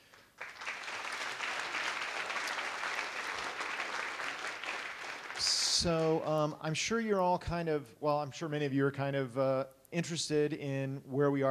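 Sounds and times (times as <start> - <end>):
audience applause: 0.0 - 6.2
speech: 5.4 - 11.4.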